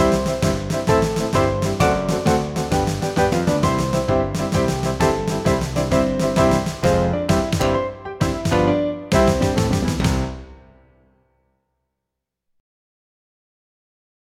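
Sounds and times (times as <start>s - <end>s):
musical accompaniment: 0.0s - 11.1s.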